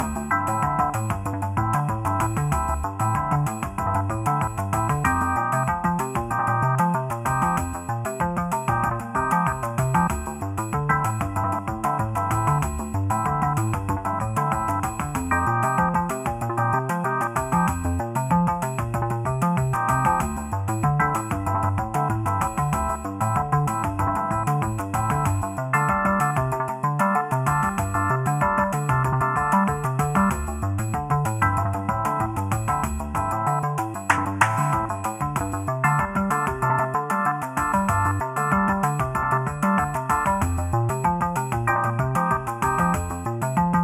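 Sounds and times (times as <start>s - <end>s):
lo-fi puzzle music: 0.0s - 43.8s.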